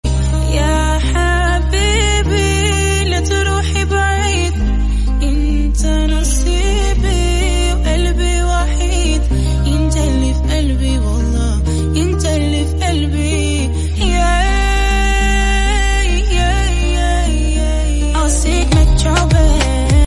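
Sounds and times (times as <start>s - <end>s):
English song: 0.2s - 20.0s.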